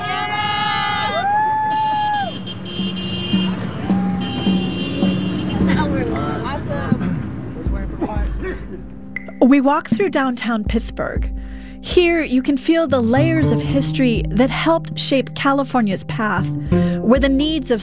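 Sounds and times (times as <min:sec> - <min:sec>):
crowd of people shouting and cheering: 0:00.0 - 0:02.6, 0:03.4 - 0:05.7
support cars honking: 0:00.0 - 0:09.6
steady traffic noise: 0:00.0 - 0:09.8
speech: 0:09.4 - 0:17.8.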